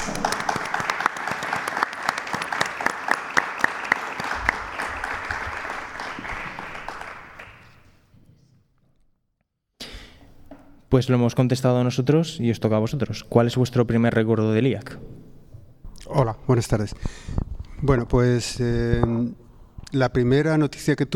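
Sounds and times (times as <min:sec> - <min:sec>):
audience applause: 0:00.0 - 0:07.9
speech: 0:10.9 - 0:15.1, 0:16.2 - 0:21.1.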